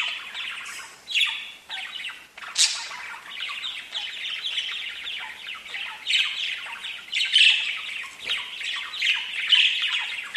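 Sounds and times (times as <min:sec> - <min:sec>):
budgerigar warbling chatter: 0:00.0 - 0:10.3.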